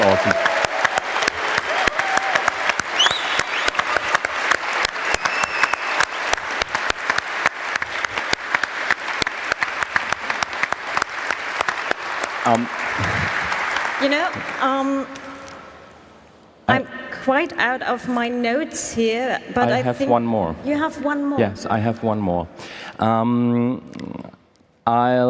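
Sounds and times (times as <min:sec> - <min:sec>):
voices and whoops: 0:00.0 - 0:04.4
audience applause: 0:00.0 - 0:15.4
speech: 0:12.5 - 0:13.2, 0:14.0 - 0:15.2, 0:16.7 - 0:24.0, 0:24.8 - 0:25.2.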